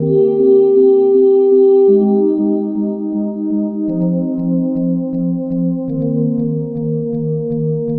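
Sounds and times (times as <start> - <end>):
trance synth pad: 0.0 - 7.9.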